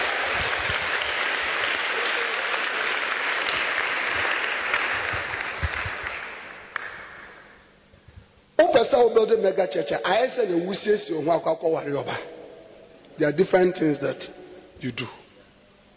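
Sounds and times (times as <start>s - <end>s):
audience clapping hands: 0.0s - 7.5s
speech: 8.8s - 12.3s, 13.2s - 15.2s.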